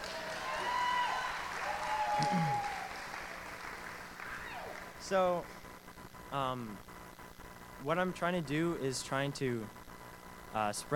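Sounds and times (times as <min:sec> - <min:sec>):
audience applause during a talk about a baptism: 0:00.0 - 0:05.0
speech: 0:02.2 - 0:02.7, 0:05.1 - 0:05.6, 0:06.3 - 0:06.9, 0:07.8 - 0:09.8, 0:10.5 - 0:10.9.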